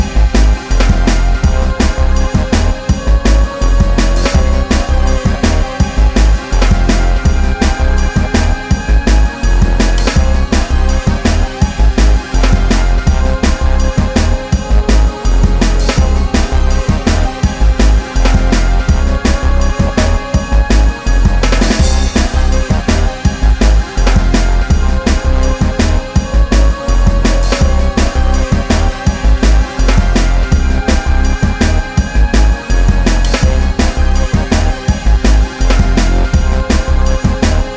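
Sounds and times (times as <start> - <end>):
drums: 0.0 - 37.7.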